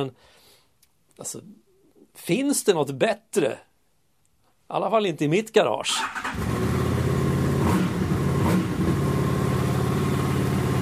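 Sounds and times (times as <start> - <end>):
speech: 0.0 - 0.4, 1.2 - 1.6, 2.2 - 3.7, 4.7 - 6.8
motorcycle engine starting and revving: 6.0 - 10.8.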